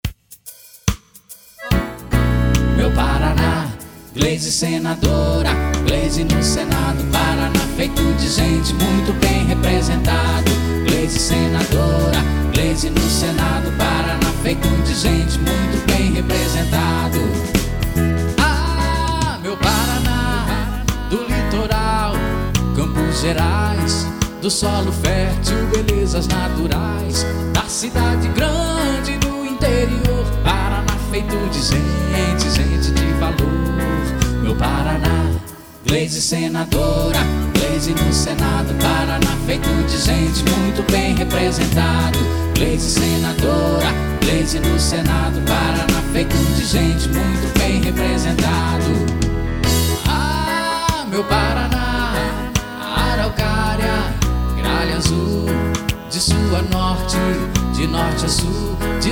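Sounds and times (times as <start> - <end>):
jingle: 1.6 - 35.9, 36.5 - 59.1.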